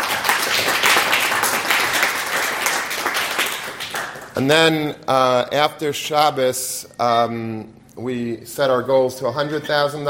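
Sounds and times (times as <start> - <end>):
audience applause: 0.0 - 4.4
speech: 4.4 - 10.0.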